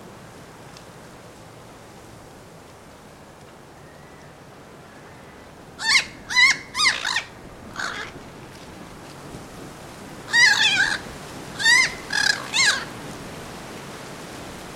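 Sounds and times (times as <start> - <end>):
harsh nasal bird caws: 5.8 - 8.2, 10.3 - 12.9.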